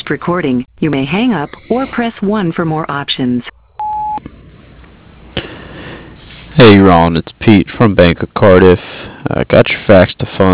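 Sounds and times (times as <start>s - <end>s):
speech: 0.1s - 3.6s, 6.6s - 10.5s
voicemail beep: 3.8s - 4.2s.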